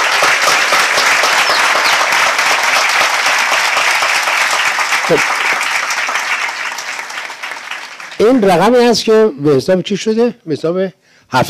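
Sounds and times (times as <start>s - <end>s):
audience applauding: 0.0s - 9.2s
speech: 5.1s - 5.4s, 8.2s - 11.4s.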